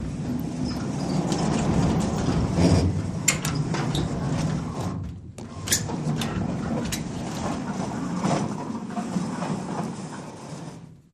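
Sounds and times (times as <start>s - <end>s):
metal barn door sliding: 0.0s - 11.0s.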